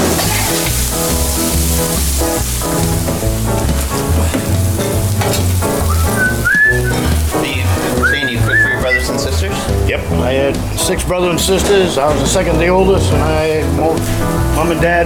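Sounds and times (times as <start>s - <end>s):
mushrooms steaming and sizzling in a pan: 0.0s - 9.9s
speech: 10.9s - 15.0s.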